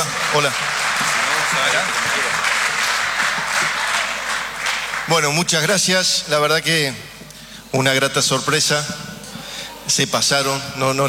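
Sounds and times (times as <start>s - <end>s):
applause: 0.0s - 5.7s
speech: 0.3s - 0.7s, 5.1s - 9.1s, 9.9s - 11.0s.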